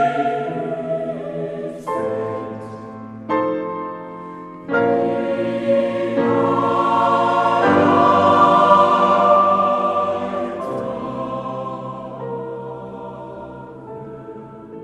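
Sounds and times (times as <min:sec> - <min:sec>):
choir singing in a church in Cologne: 0:00.0 - 0:03.3, 0:04.0 - 0:14.8
piano played four hands in a church in Cologne: 0:00.0 - 0:14.8.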